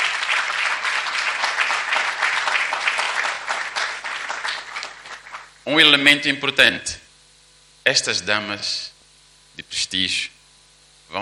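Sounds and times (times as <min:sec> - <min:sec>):
audience applause: 0:00.0 - 0:05.6
speech: 0:05.7 - 0:07.0, 0:07.9 - 0:08.9, 0:09.6 - 0:10.4, 0:11.1 - 0:11.2.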